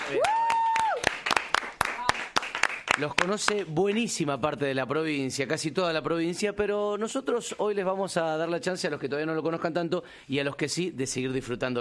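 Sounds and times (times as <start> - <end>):
applause: 0.0 - 3.8
speech: 0.1 - 0.4, 3.0 - 11.7.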